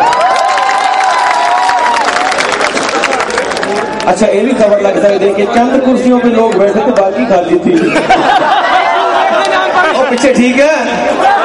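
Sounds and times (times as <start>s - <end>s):
audience clapping and cheering at a live show: 0.0s - 5.2s, 9.0s - 10.3s
speech: 4.1s - 8.8s, 10.1s - 11.3s
laughter: 7.6s - 11.4s.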